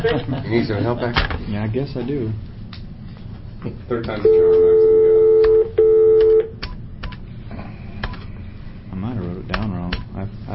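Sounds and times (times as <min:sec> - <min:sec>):
speech: 0:00.0 - 0:02.6, 0:03.6 - 0:05.0
telephone dial tone: 0:04.6 - 0:06.5.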